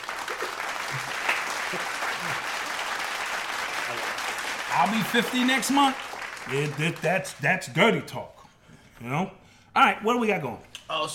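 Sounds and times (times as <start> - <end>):
crowd applauding: 0.0 - 7.6
speech: 4.8 - 8.4, 9.0 - 11.1.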